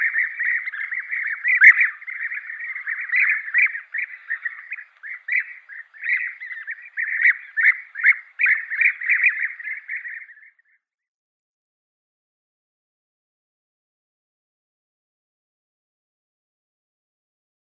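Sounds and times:
European bee-eater rolling burry calls: 0.0 - 10.6.

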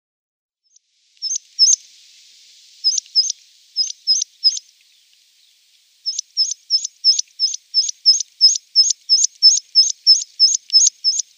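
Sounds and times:
meadow pipit song: 0.7 - 11.3.

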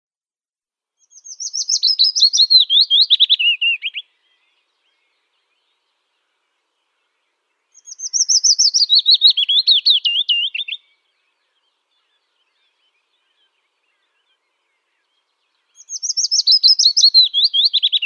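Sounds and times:
willow warbler singing: 1.0 - 18.0.

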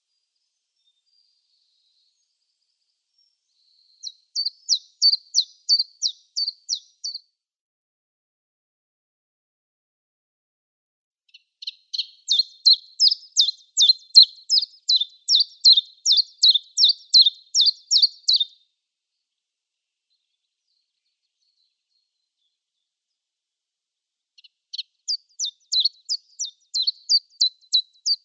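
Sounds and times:
common chiffchaff song: 0.1 - 7.3, 11.3 - 18.6, 20.1 - 23.2, 24.3 - 28.2.

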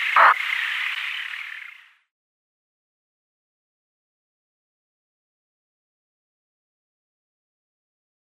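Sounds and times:
Eurasian Spoonbill colony calling: 0.0 - 1.8.

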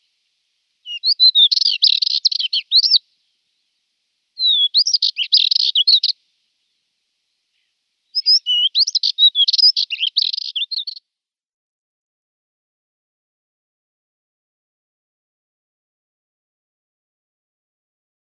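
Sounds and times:
spectacled warbler twittering: 0.8 - 3.0, 4.4 - 6.2, 8.1 - 11.0.

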